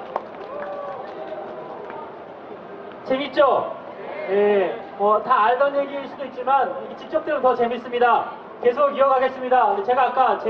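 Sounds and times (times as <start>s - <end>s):
audience applause: 0.0s - 2.1s
speech: 3.1s - 10.4s.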